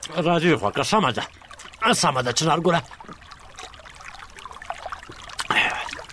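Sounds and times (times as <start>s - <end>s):
sweet water pouring: 0.0s - 6.1s
speech: 0.1s - 3.2s
wet sip of sweet water: 3.0s - 6.1s.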